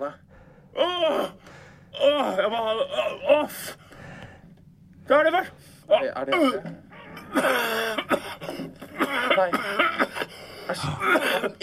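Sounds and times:
speech: 0.0 - 1.4, 2.0 - 3.8, 5.1 - 10.1, 10.7 - 11.6
strained pitched groans: 0.0 - 11.5
person imitating gagging coughs from something stuck in the throat: 6.4 - 11.6.

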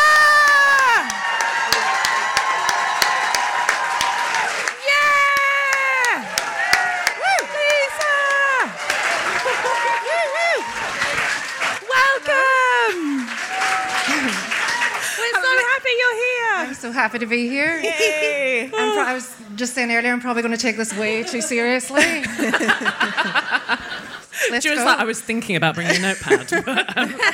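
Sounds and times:
audience shouting excitedly: 0.0 - 16.6
live audience applause welcoming a guest onstage: 0.0 - 16.8
laughter: 7.2 - 13.4, 14.0 - 16.4, 17.6 - 19.2, 20.8 - 25.0, 25.7 - 27.3
speech: 17.0 - 23.4, 24.5 - 27.3.

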